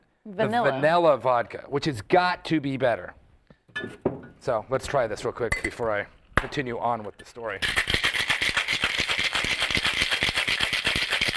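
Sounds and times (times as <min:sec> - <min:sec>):
speech: 0:00.2 - 0:03.2, 0:03.8 - 0:08.0
ice rattling in a cocktail shaker: 0:07.6 - 0:11.3.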